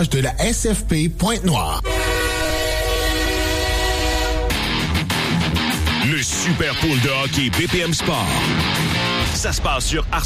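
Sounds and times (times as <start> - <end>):
speech: 0.0 - 2.0, 6.0 - 10.2
train horn at a railway crossing: 1.8 - 4.9.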